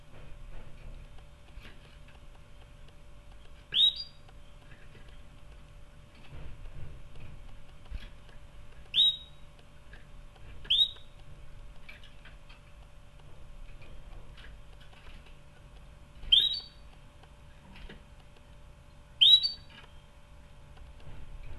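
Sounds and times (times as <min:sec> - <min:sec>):
quiet low hum: 0:00.0 - 0:21.5
canary chirps: 0:03.7 - 0:04.6, 0:08.8 - 0:09.5, 0:10.6 - 0:11.2, 0:16.2 - 0:16.9, 0:19.2 - 0:20.1.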